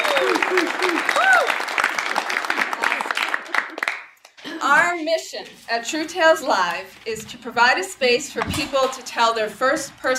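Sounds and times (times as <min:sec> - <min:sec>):
studio audience applauding at a storytelling show for a New Hampshire television channel: 0:00.0 - 0:04.4
speech: 0:05.3 - 0:10.1.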